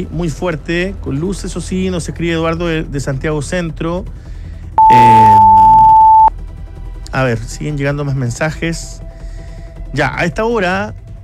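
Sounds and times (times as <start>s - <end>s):
speech: 0.0s - 5.6s, 7.1s - 9.1s, 9.9s - 11.0s
SAE emergency alert tone: 4.8s - 6.3s.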